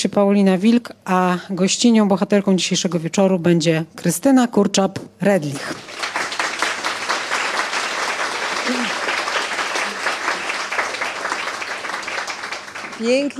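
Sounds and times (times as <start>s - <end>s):
speech: 0.2s - 6.2s, 13.0s - 13.3s
sustained audience applause from a sizable crowd: 5.7s - 13.3s.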